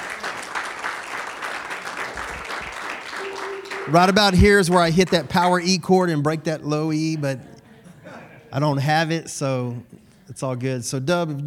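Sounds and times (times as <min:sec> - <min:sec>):
audience clapping: 0:00.0 - 0:05.8
speech: 0:03.9 - 0:07.5, 0:08.5 - 0:11.4.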